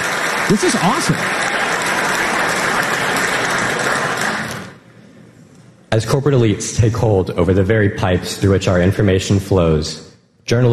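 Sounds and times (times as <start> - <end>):
crowd cheering: 0.0 - 4.8
speech: 0.5 - 1.6, 5.9 - 10.7.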